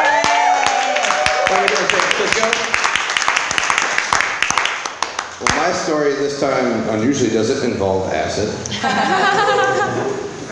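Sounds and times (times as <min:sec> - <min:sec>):
person cheering: 0:00.0 - 0:02.0
audience applause welcoming a performer from Illinois: 0:00.0 - 0:05.9
speech: 0:05.4 - 0:10.4
laughter: 0:08.7 - 0:10.4.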